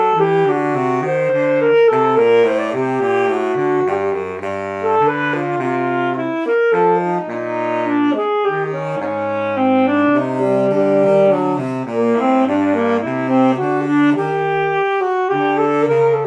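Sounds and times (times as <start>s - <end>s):
alto: 0.0s - 16.2s
baritone: 0.0s - 16.2s.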